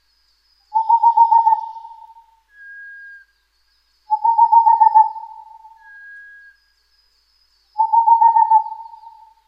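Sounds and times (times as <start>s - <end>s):
Boreal Owl singing trills of hoots: 0.7s - 2.4s, 4.1s - 6.6s, 7.8s - 9.4s.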